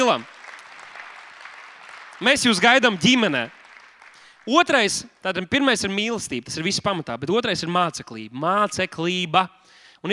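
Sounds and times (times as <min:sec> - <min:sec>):
audience applause: 0:00.0 - 0:04.9
speech: 0:00.1 - 0:00.4, 0:02.2 - 0:03.6, 0:04.4 - 0:10.1.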